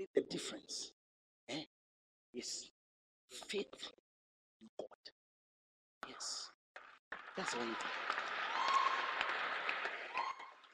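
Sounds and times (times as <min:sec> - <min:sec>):
speech: 0:00.0 - 0:04.0, 0:04.6 - 0:05.2, 0:06.0 - 0:08.2
crowd clapping: 0:06.8 - 0:10.7.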